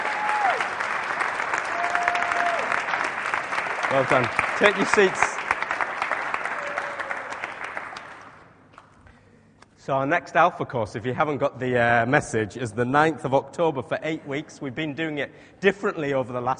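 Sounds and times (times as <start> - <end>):
audience applause: 0.0 - 8.5
speech: 3.9 - 5.3, 9.9 - 16.5.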